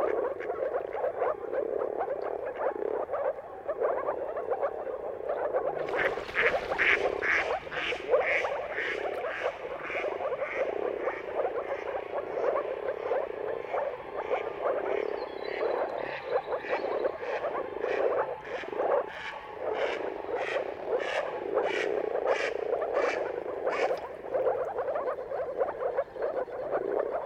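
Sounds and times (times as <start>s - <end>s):
moor frog chorus croaking: 0.0s - 27.2s
duck quacking: 5.9s - 11.9s.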